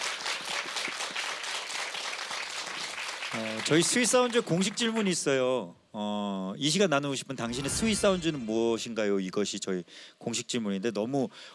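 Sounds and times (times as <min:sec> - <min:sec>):
audience applause: 0:00.0 - 0:04.7
speech: 0:03.4 - 0:11.5.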